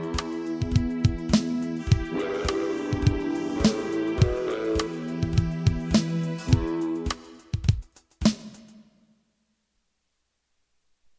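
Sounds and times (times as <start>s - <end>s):
instrumental music: 0.0s - 8.7s.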